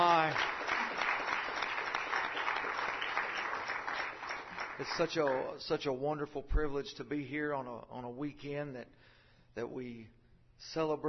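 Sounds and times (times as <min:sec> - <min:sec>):
audience hand clapping: 0:00.0 - 0:05.6
speech: 0:04.8 - 0:11.0.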